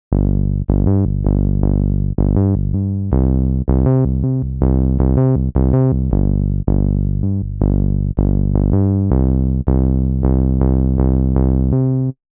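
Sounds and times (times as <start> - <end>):
synth bass: 0.0 - 12.2.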